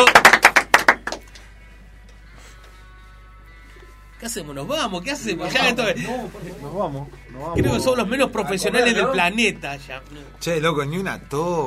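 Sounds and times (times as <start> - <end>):
hand clapping applause: 0.0 - 1.5
speech: 4.2 - 11.6.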